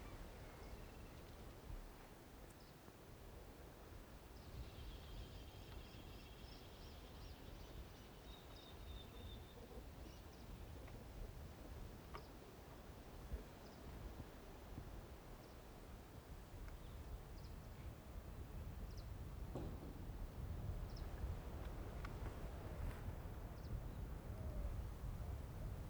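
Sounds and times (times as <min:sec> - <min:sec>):
outdoor afternoon countryside ambience in Tacuarembo Uruguay: 0:00.0 - 0:25.8.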